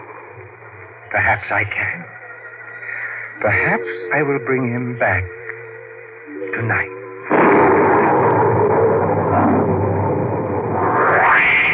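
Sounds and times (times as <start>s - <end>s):
speech: 1.1s - 2.2s, 3.4s - 5.4s, 6.6s - 7.0s
tremendous thunderclap: 7.3s - 11.7s.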